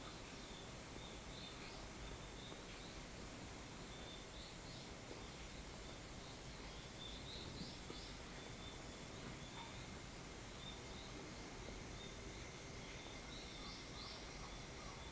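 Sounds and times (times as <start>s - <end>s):
evening cicada song: 0.1s - 15.1s.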